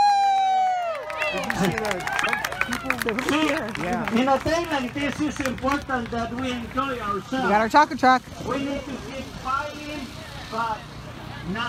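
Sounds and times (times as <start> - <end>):
whooping shout: 0.0 - 3.0
crowd applause: 0.3 - 7.1
speech: 1.3 - 11.6.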